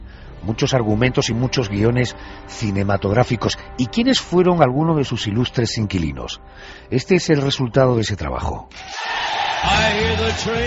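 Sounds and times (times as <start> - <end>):
speech: 0.4 - 10.6
prison inmates applauding and cheering: 8.7 - 10.6.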